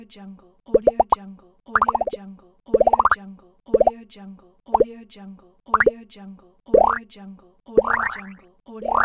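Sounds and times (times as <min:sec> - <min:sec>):
pops: 0:00.7 - 0:01.2, 0:01.7 - 0:02.2, 0:02.7 - 0:03.2, 0:03.7 - 0:03.9, 0:05.7 - 0:05.9, 0:06.7 - 0:07.0, 0:07.8 - 0:09.0.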